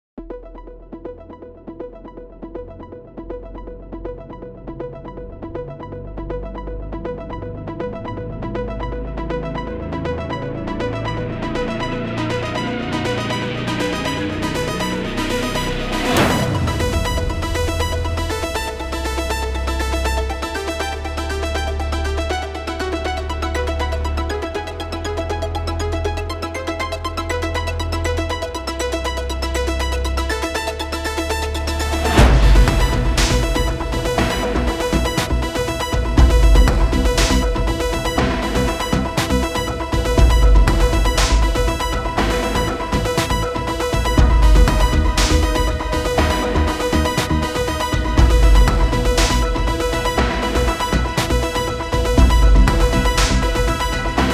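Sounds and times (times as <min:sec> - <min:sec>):
cinematic cyberwave music: 0:00.2 - 0:54.3.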